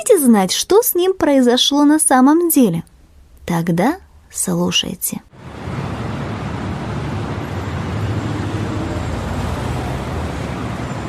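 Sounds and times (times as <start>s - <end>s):
speech: 0.0s - 2.9s, 3.5s - 5.6s
noisy big-city street traffic: 5.3s - 11.0s.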